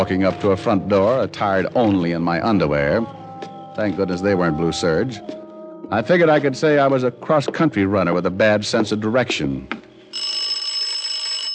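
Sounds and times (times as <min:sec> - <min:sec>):
speech: 0:00.0 - 0:03.2, 0:03.8 - 0:10.2
electric doorbell ringing: 0:10.1 - 0:11.5.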